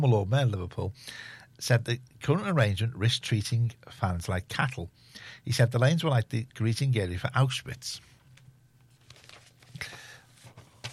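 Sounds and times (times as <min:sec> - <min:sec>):
speech: 0:00.0 - 0:08.1
paper getting tangled: 0:08.9 - 0:10.9.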